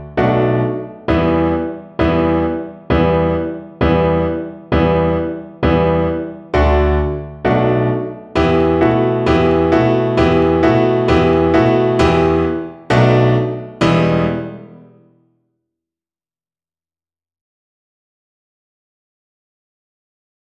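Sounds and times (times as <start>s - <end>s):
piano accompaniment: 0.0s - 15.2s.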